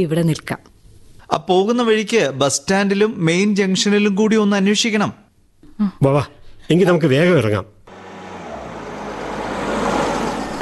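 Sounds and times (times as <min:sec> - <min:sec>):
speech: 0:00.0 - 0:05.2, 0:05.8 - 0:07.8
car arriving at night, engine and road noise: 0:07.9 - 0:10.6.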